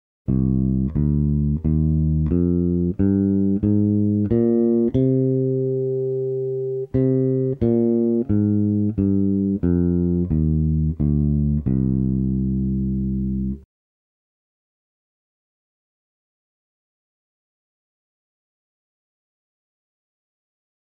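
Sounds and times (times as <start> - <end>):
music in Aeolian minor: 0.3 - 13.6.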